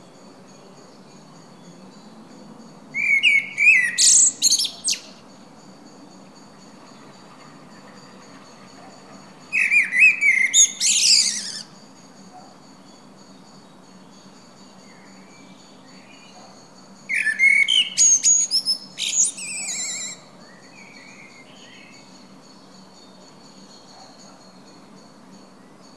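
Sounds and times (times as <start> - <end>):
common blackbird singing: 2.9 - 5.2, 9.5 - 11.7, 17.1 - 22.1.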